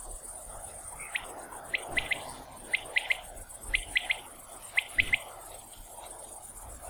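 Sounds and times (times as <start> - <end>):
common quail giving its sharp three-note song: 1.0 - 5.2.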